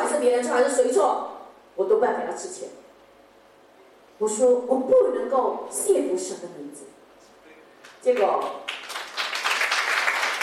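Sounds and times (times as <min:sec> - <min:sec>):
speech: 0:00.2 - 0:02.8, 0:04.2 - 0:07.0, 0:08.0 - 0:08.7
church congregation clapping during a Chinese-language sermon: 0:07.8 - 0:10.4.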